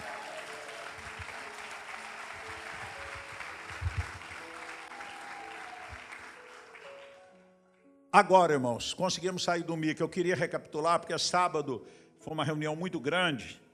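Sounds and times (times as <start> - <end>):
audience applauding: 0.0 - 7.4
speech: 8.2 - 13.6.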